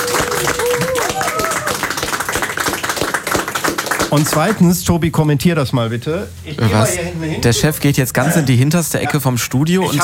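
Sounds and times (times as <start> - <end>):
applause: 0.0 - 4.6
speech: 4.1 - 10.0.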